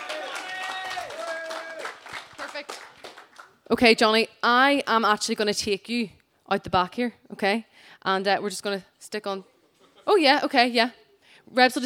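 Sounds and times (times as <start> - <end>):
crowd shouting and cheering: 0.0 - 2.6
crowd clapping: 0.0 - 3.7
speech: 3.7 - 9.5, 10.1 - 11.8.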